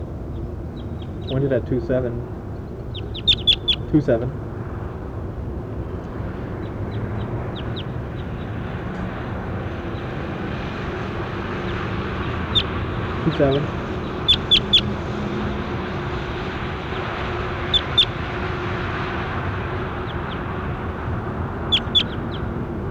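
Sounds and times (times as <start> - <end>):
bird calling outdoors: 0.0 - 5.0, 6.3 - 22.9
speech: 1.3 - 2.4, 3.9 - 4.5, 13.2 - 13.8.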